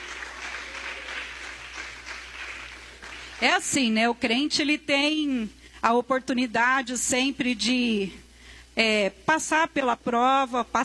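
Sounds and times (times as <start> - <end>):
crowd clapping: 0.0 - 3.6
speech: 3.4 - 8.2, 8.8 - 10.8.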